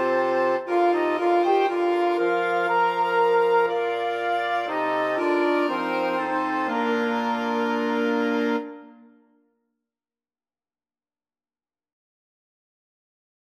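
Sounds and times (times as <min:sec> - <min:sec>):
wind quintet: 0:00.0 - 0:09.2.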